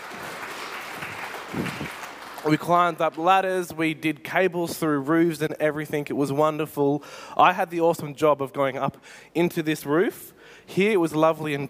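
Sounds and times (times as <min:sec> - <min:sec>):
audience applause: 0:00.0 - 0:03.1
speech: 0:01.6 - 0:11.6.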